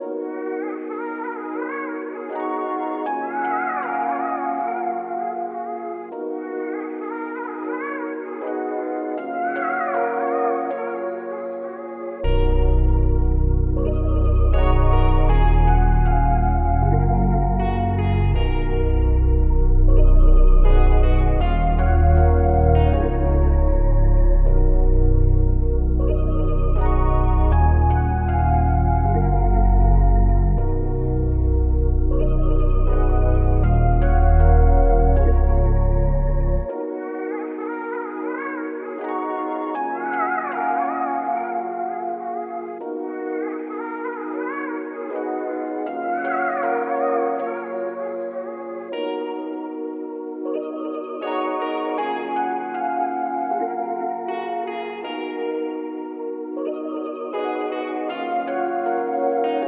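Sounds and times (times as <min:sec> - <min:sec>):
RnB melody at 157 BPM in D sharp minor: 0:00.0 - 0:59.6.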